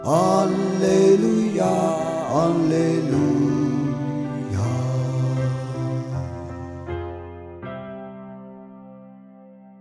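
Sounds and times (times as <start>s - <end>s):
singing: 0.0s - 6.8s.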